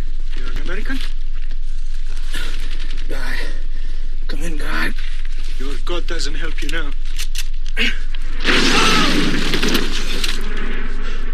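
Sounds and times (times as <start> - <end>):
speech: 0.8 - 1.3, 4.4 - 7.2, 7.8 - 9.1
.50 cal bullet hitting a man, film sound effect: 8.4 - 11.3.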